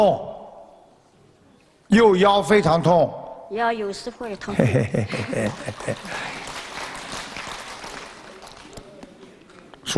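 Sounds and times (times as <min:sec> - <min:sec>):
speech: 0:00.0 - 0:00.3, 0:01.9 - 0:06.4
laughter: 0:04.4 - 0:06.5
audience applause: 0:05.0 - 0:09.0.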